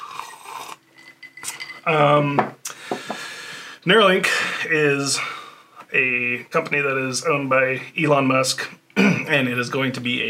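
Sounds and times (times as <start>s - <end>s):
whiskey glass clinking: 0.9s - 3.1s
speech: 1.8s - 2.6s, 3.8s - 10.2s.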